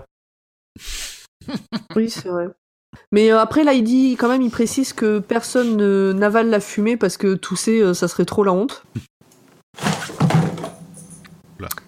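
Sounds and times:
laughter: 1.4s - 2.1s
speech: 1.5s - 9.1s
cat falling with a thud: 9.8s - 10.9s
rustling scraping clatter: 9.8s - 11.2s.

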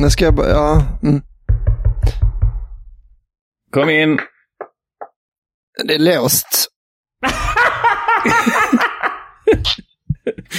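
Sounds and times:
speech: 0.0s - 1.3s, 3.7s - 4.3s, 5.8s - 7.6s, 8.2s - 8.8s
knocking on a door: 0.0s - 3.2s
laughter: 7.2s - 10.5s.

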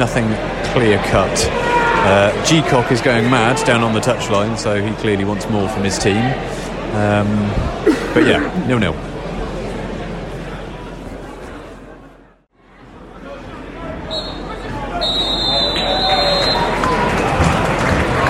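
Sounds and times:
speech: 0.0s - 9.1s
football stadium crowd murmur: 0.0s - 18.2s
laughter: 7.8s - 8.8s
referee's half-time whistle at football match: 14.1s - 16.8s.

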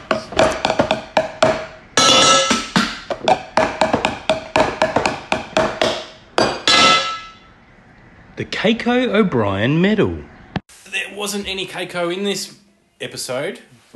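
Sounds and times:
banging on metal pots: 0.0s - 7.4s
speech: 8.4s - 10.3s, 11.2s - 13.8s.

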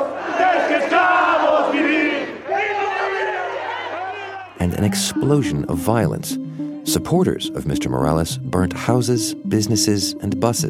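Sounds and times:
opposition protesters cheering and shouting: 0.0s - 5.2s
speech: 4.6s - 10.6s.

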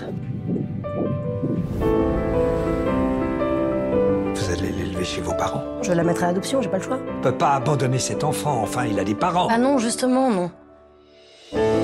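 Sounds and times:
fetal heartbeat on ultrasound doppler monitor: 0.0s - 1.8s
soft sustained music: 0.0s - 11.8s
speech: 5.1s - 10.6s.

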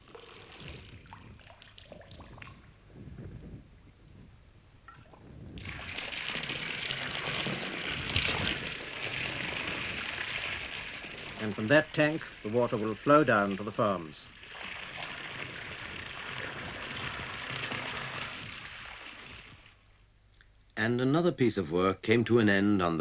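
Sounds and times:
electric pump pumping well water: 5.6s - 19.7s
speech: 11.6s - 14.4s, 20.8s - 22.9s.

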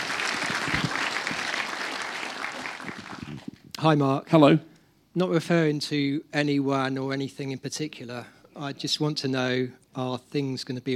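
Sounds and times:
audience applause: 0.0s - 3.5s
speech: 3.8s - 10.9s.

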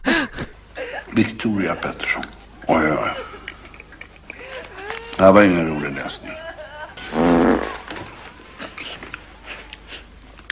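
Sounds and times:
laughter: 0.0s - 9.4s
speech: 1.2s - 3.2s, 5.2s - 6.3s
short loud buzzy fart: 7.0s - 8.2s.

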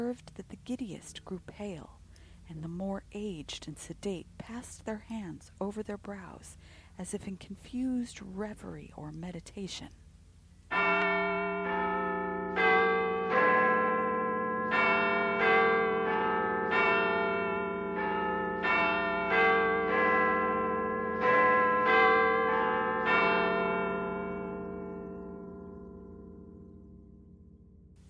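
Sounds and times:
speech: 0.0s - 10.0s
clock chimes: 10.7s - 26.9s.

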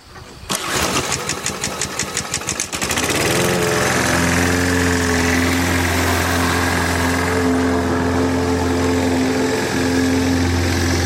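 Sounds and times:
lawn mower engine running: 0.1s - 11.0s.

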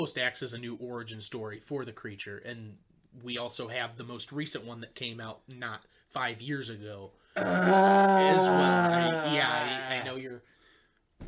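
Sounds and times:
speech: 0.0s - 10.5s
person groaning: 7.4s - 10.2s.

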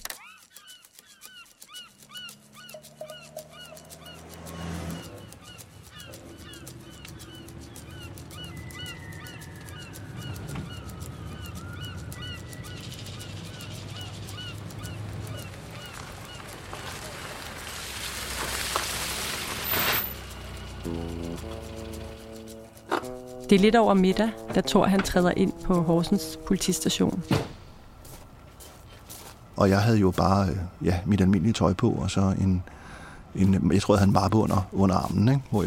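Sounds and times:
seagulls calling: 0.0s - 17.5s, 19.7s - 28.0s
speech: 23.5s - 27.5s, 29.6s - 35.6s.

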